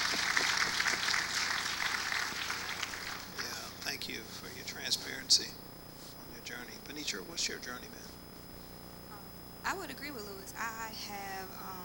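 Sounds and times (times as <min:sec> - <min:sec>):
audience clapping: 0:00.0 - 0:03.8
speech: 0:04.1 - 0:05.6, 0:06.5 - 0:08.1, 0:09.6 - 0:11.8.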